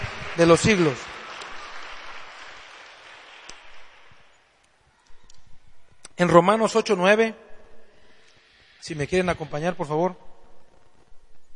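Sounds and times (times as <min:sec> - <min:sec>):
audience applause: 0:00.0 - 0:04.6
speech: 0:00.4 - 0:01.1, 0:06.2 - 0:07.4, 0:08.8 - 0:10.3.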